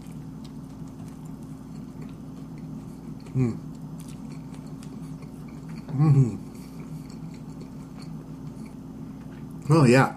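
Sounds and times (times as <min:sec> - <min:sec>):
biting and chewing a Dairy Queen Loaded Steakhouse Burger: 0:00.0 - 0:06.0, 0:06.6 - 0:08.8
low steady hum: 0:00.0 - 0:10.1.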